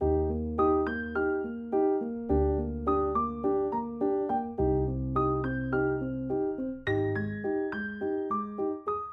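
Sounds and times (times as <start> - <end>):
D sharp major piano loop: 0.0 - 9.1.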